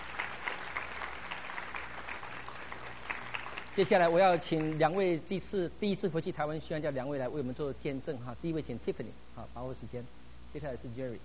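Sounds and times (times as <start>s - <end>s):
audience applause: 0.0s - 4.8s
speech: 3.8s - 11.2s.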